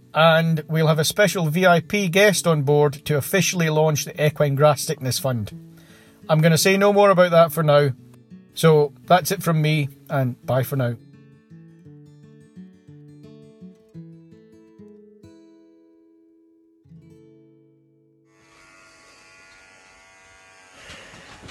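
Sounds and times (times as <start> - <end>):
speech: 0.1 - 5.7, 6.3 - 8.0, 8.6 - 11.0
electric shaver buzzing during a charity head shave: 18.3 - 21.5.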